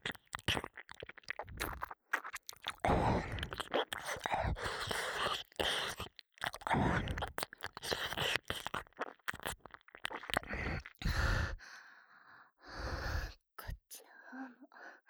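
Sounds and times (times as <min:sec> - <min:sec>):
ear licking sounds at home: 0:00.0 - 0:11.2.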